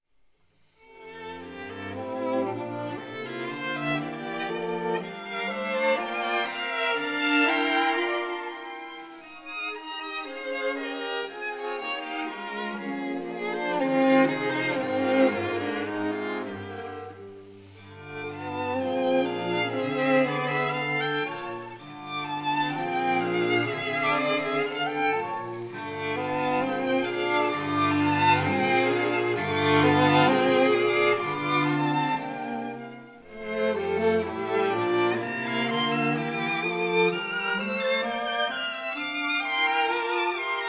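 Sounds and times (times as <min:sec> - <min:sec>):
string quartet in F major: 0:00.8 - 0:40.6.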